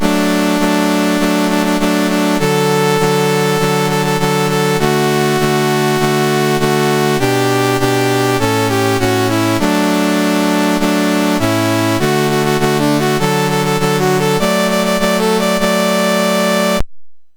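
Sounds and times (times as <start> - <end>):
national anthem chiptune on MOS6581R4 chip: 0.0 - 16.8.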